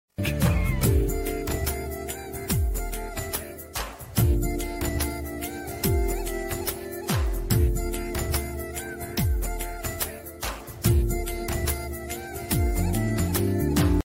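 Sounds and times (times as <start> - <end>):
instrumental love background song: 0.2 - 14.0.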